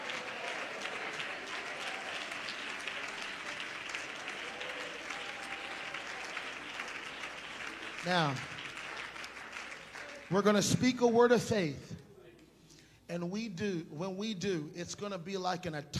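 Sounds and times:
audience clapping hands: 0:00.0 - 0:11.1
speech: 0:08.0 - 0:08.6, 0:10.3 - 0:12.0, 0:13.1 - 0:15.9.

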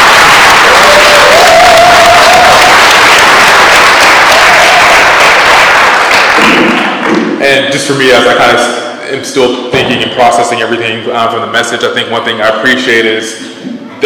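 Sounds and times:
audience applause: 0:00.0 - 0:07.2
speech: 0:07.9 - 0:14.0.

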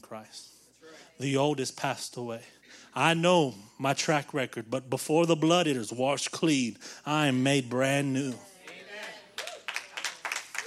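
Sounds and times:
speech: 0:00.1 - 0:00.6, 0:01.2 - 0:08.5
few people clapping: 0:08.3 - 0:10.6.

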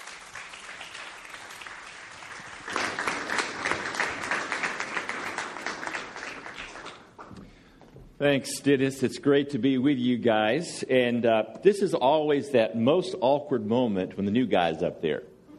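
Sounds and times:
audience applause welcoming a speaker: 0:00.0 - 0:07.3
speech: 0:08.2 - 0:15.3.

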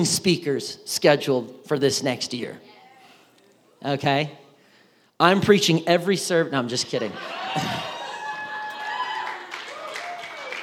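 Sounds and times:
speech: 0:00.0 - 0:02.7, 0:03.8 - 0:04.4, 0:05.2 - 0:07.9
courtesy applause from audience: 0:08.8 - 0:10.6.

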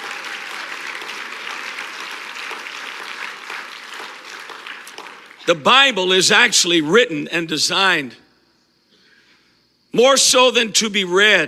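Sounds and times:
audience clapping hands: 0:00.0 - 0:06.2
speech: 0:05.5 - 0:08.2, 0:10.0 - 0:11.4.

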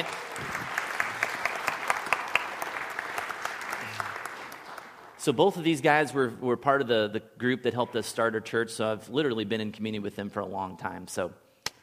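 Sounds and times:
audience applause: 0:00.0 - 0:05.2
speech: 0:05.2 - 0:11.4.

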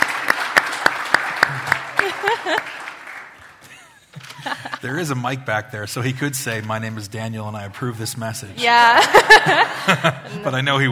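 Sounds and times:
steady evenly spaced hand claps: 0:00.0 - 0:03.7
laughter: 0:01.5 - 0:02.8, 0:03.6 - 0:05.2, 0:08.7 - 0:10.7
speech: 0:02.3 - 0:02.8, 0:04.4 - 0:10.9.

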